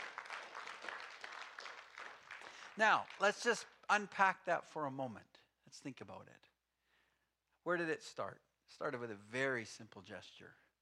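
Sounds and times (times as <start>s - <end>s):
audience applause: 0.0s - 3.6s
speech: 2.8s - 6.5s, 7.6s - 10.6s.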